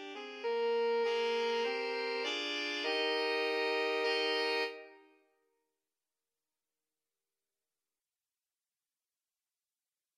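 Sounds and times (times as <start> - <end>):
saxophone quartet: 0.0 - 5.1.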